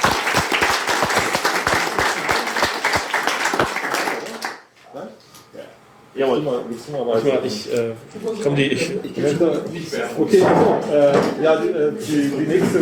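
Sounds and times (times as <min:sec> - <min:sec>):
audience applause: 0:00.0 - 0:04.7
speech: 0:06.2 - 0:12.8.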